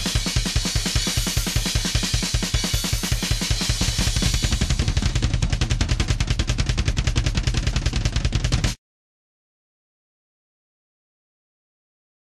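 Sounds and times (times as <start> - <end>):
drums: 0.0 - 8.8.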